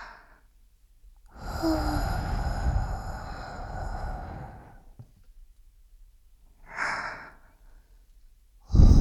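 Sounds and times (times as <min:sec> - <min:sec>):
ASMR breath blowing into ear: 0:01.3 - 0:05.0, 0:08.7 - 0:08.9.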